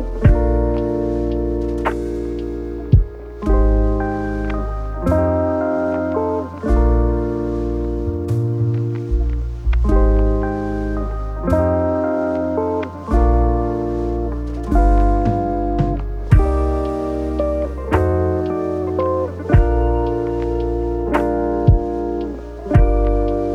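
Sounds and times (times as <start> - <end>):
lofi music: 0.0 - 23.5.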